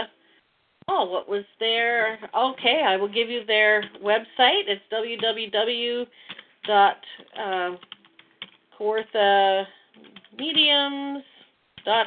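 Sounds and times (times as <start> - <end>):
speech: 1.0 - 8.0, 8.8 - 12.0
keyboard typing: 6.2 - 9.1, 9.9 - 10.8, 11.8 - 12.0.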